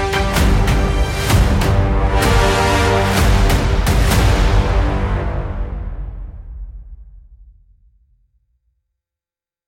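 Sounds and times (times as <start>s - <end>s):
trombone lead: 0.0s - 5.8s.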